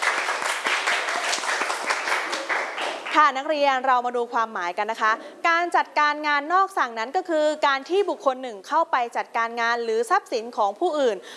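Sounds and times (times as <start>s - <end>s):
students clapping: 0.0s - 3.2s
speech: 3.2s - 11.3s.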